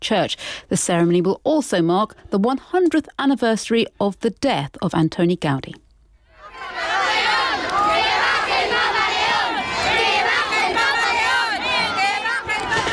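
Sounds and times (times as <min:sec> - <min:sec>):
speech: 0:00.0 - 0:05.8
large crowd cheering and shouting: 0:06.3 - 0:12.9.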